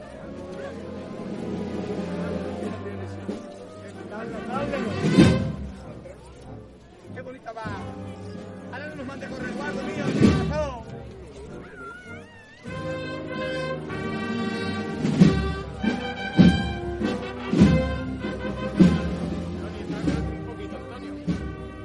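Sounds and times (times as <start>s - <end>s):
band playing in a procession: 0.0s - 21.8s
voices in a procession: 0.0s - 21.8s
drum hits: 15.0s - 20.5s.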